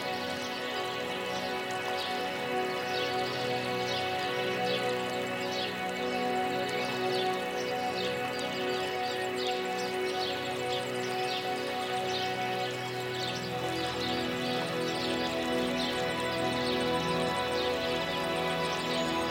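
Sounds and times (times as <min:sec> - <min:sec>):
birds singing: 0:00.0 - 0:19.2
river flowing: 0:00.0 - 0:19.2
soft relaxing music: 0:00.0 - 0:19.2.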